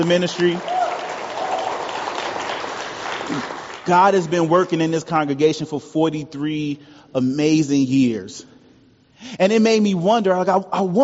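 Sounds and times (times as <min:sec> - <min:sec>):
speech: 0:00.0 - 0:00.7, 0:03.3 - 0:08.5, 0:09.2 - 0:11.0
round of applause: 0:00.0 - 0:04.8.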